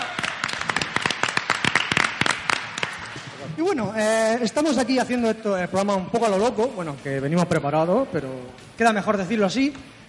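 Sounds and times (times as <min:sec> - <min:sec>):
applause: 0:00.0 - 0:03.3
speech: 0:03.6 - 0:09.9.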